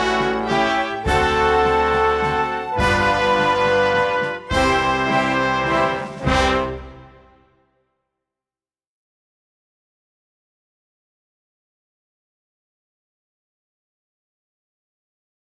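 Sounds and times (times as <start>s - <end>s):
recorder playing a song: 0.0s - 6.5s.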